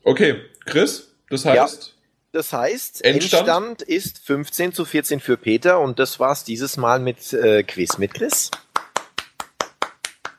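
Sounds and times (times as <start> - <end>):
speech: 0.1 - 8.6
hand clapping: 7.8 - 10.3.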